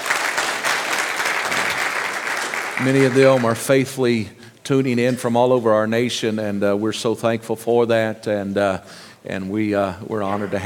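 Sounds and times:
audience applauding: 0.0 - 3.7
speech: 2.8 - 10.6.

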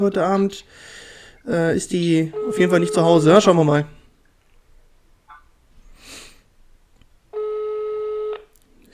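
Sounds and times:
speech: 0.0 - 4.0
electronic ringback tone on an outgoing phone call: 2.3 - 3.3, 7.4 - 8.5.

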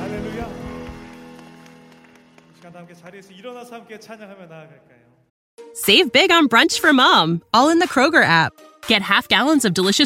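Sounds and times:
audience applause: 0.0 - 3.5
speech: 2.7 - 5.0, 5.8 - 10.0.

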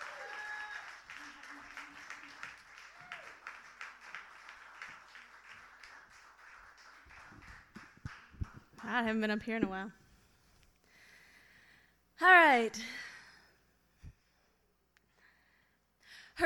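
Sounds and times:
audience clapping: 0.0 - 9.3
speech: 8.9 - 10.0, 12.2 - 13.0.

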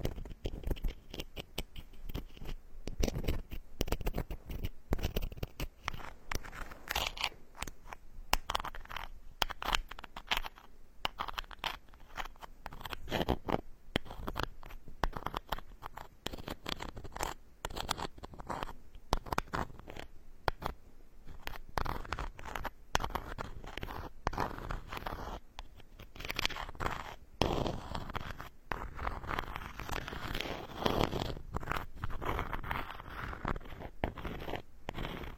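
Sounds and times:
faint high hiss: 0.0 - 5.0, 5.6 - 11.2, 11.8 - 15.1, 20.0 - 21.8
wooden tools scratching and brushing over a scalp: 0.0 - 35.3.

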